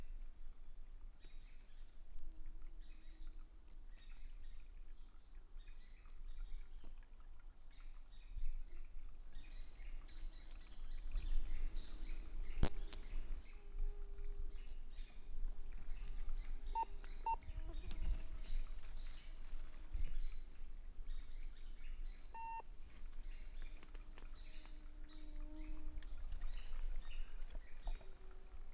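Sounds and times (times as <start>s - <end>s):
faint bird sounds: 0.0s - 28.7s
soft background hum: 0.0s - 28.7s
Brachycephalus frog calling: 10.4s - 10.8s, 12.6s - 15.2s, 16.1s - 18.2s, 22.1s - 22.7s.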